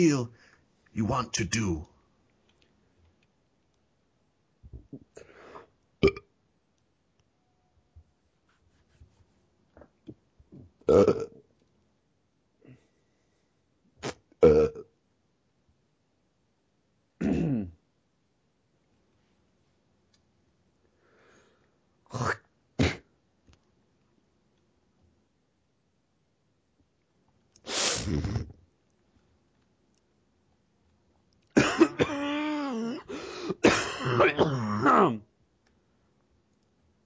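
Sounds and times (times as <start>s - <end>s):
speech: 0.0s - 0.4s, 1.0s - 1.9s, 10.9s - 11.4s, 28.0s - 28.3s, 33.6s - 35.3s
person coughing: 17.2s - 17.7s, 22.8s - 23.1s, 31.6s - 35.2s
throat clearing: 17.2s - 17.8s, 22.2s - 23.1s, 28.0s - 28.6s, 31.5s - 35.2s.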